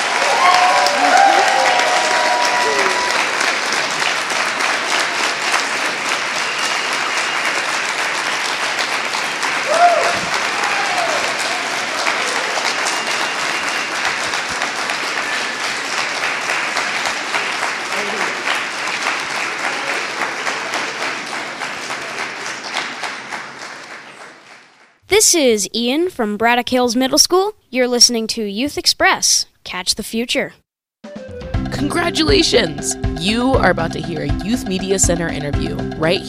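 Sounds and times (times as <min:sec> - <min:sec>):
audience applauding youth poets after their performances: 0:00.0 - 0:25.0
speech: 0:25.2 - 0:30.6, 0:31.7 - 0:36.2.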